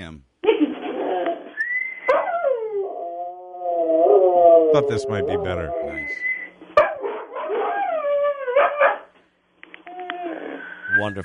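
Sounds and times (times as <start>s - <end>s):
speech: 0.0s - 0.3s, 4.7s - 6.3s, 11.0s - 11.2s
dog howling over a phone line: 1.0s - 6.5s, 7.2s - 9.0s, 9.9s - 10.9s.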